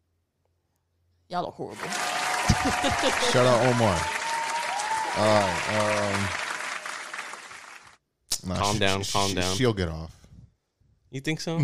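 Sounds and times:
speech: 1.3 - 4.2, 5.2 - 6.4, 8.4 - 10.2, 11.1 - 11.6
laughter: 1.8 - 4.3, 5.0 - 6.4, 8.5 - 9.7
crowd applause sound effect: 1.8 - 7.9.

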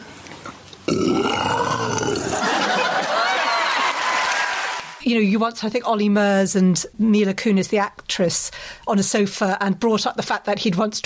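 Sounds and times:
person imitating a lion roar: 0.9 - 2.5
laughter: 2.1 - 4.3
speech: 5.0 - 11.0.

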